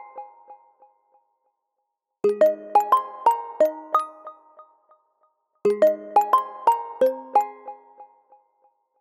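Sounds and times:
ringtone tune: 2.3s - 4.6s, 5.7s - 8.2s.

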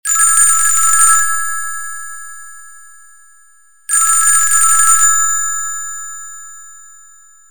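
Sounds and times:
electric phone ringtone: 0.1s - 1.6s, 3.9s - 6.0s.

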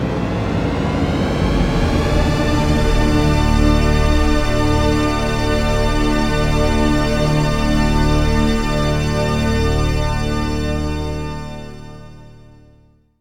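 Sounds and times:
deep tone: 0.1s - 12.7s.

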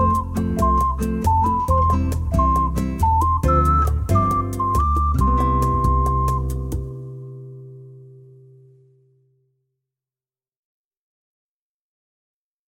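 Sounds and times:
ocarina: 0.0s - 8.7s.

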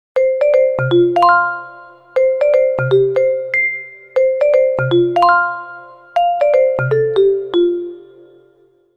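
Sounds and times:
stuttering ringtone: 0.2s - 8.1s.

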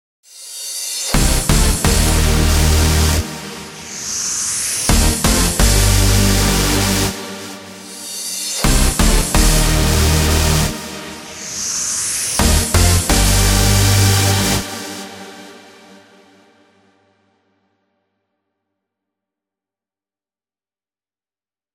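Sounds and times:
trance music: 1.0s - 16.8s.

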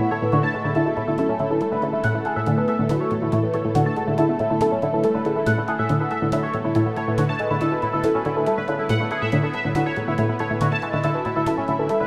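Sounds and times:
ringtone: 0.1s - 12.0s.

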